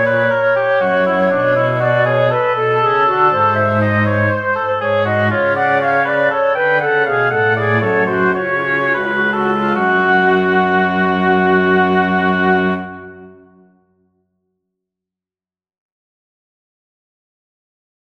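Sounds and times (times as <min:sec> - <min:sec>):
oboe: 0:00.0 - 0:13.8
cello: 0:00.0 - 0:13.9
flute: 0:00.0 - 0:13.9.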